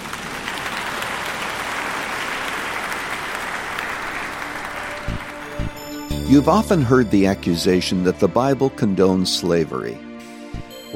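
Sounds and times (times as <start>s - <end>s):
audience applause: 0.0s - 6.1s
speech: 6.3s - 10.1s.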